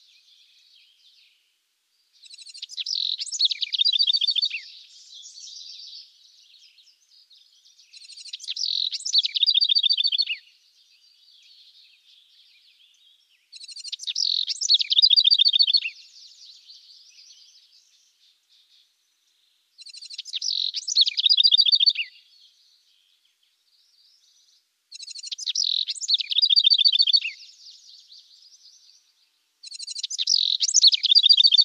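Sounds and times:
house wren chirping: 2.2 - 11.7, 12.9 - 23.2, 24.1 - 31.6.

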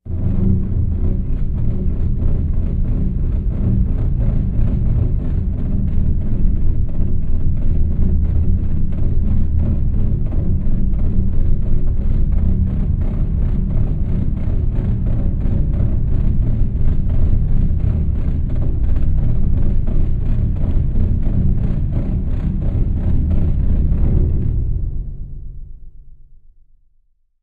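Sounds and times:
processed bowed bass string horror music: 0.0 - 25.8.

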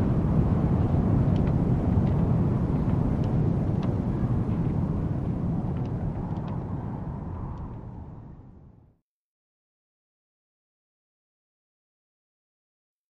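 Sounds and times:
stormy wind gusts in a sandy desert: 0.0 - 9.0.

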